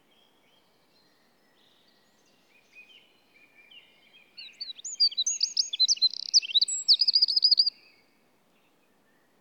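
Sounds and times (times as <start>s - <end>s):
Eurasian wren song: 2.4s - 7.9s.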